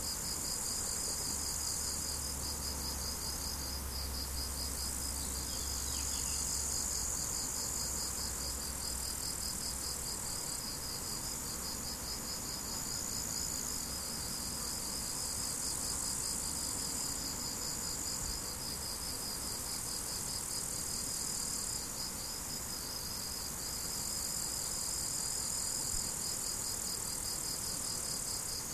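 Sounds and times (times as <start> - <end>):
crickets chirping: 0.0 - 28.7.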